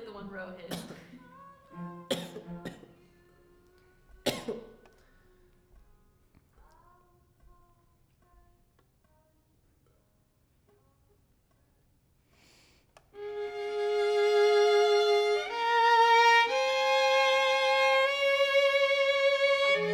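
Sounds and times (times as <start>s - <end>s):
violin: 0.0s - 4.2s, 13.2s - 19.9s.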